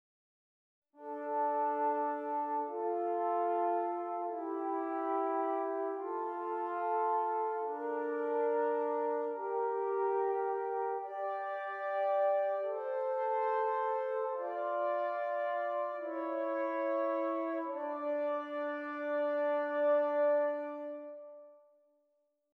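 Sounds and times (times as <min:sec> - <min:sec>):
two-voice counterpoint exercises: 0:01.0 - 0:21.6.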